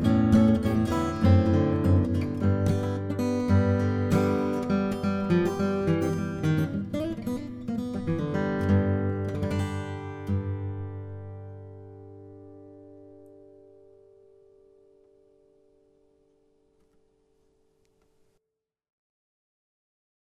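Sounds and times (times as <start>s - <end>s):
blues music: 0.0s - 15.4s.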